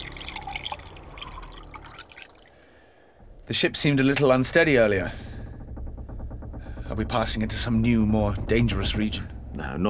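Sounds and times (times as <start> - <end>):
wine pouring into a glass: 0.0 - 2.7
speech: 3.5 - 5.2, 7.0 - 9.8.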